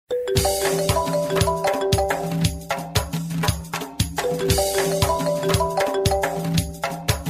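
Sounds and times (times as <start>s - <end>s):
iPhone ringtone remix: 0.1s - 3.1s, 4.2s - 7.2s.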